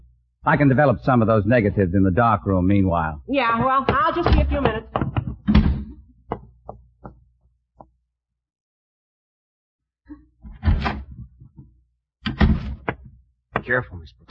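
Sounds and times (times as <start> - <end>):
speech: 0.4 - 5.6, 13.7 - 14.3
door slamming shut: 5.4 - 6.0, 10.5 - 11.3, 12.3 - 13.0.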